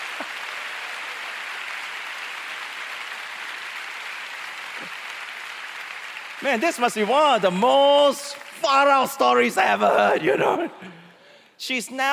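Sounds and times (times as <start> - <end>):
audience applause: 0.0 - 10.1
speech: 6.4 - 11.0, 11.6 - 12.1.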